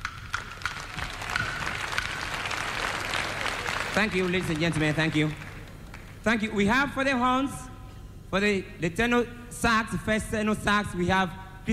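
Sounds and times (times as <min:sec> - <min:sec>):
audience applause: 0:00.0 - 0:06.2
speech: 0:04.0 - 0:05.4, 0:06.2 - 0:07.6, 0:08.3 - 0:11.7.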